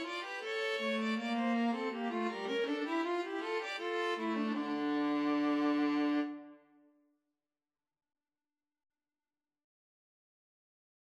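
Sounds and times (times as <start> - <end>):
violin and viola duet: 0.0 - 6.7.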